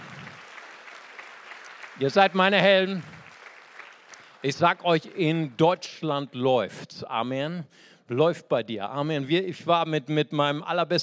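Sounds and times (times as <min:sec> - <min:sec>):
audience applause: 0:00.0 - 0:05.6
speech: 0:02.0 - 0:03.1, 0:04.4 - 0:11.0.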